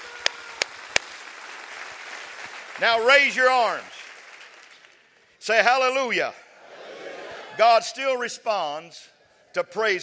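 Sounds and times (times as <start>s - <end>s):
audience clapping hands: 0.0s - 5.3s
speech: 2.8s - 4.0s, 5.4s - 6.4s, 7.6s - 10.0s.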